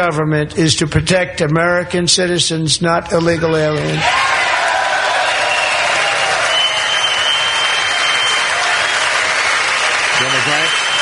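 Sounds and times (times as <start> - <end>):
speech: 0.0 - 4.4
Republicans giving the president a standing ovation: 4.0 - 10.9.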